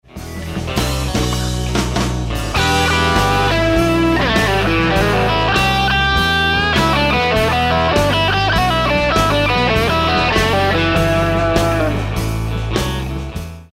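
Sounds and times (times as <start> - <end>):
guitar lick: 0.2 - 13.4.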